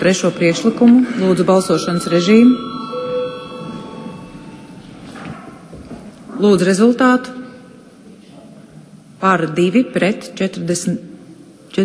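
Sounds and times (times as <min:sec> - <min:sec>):
speech: 0:00.0 - 0:02.8, 0:06.4 - 0:07.4, 0:09.2 - 0:11.1
parliamentary chamber electric bell ringing before voting: 0:00.0 - 0:05.6.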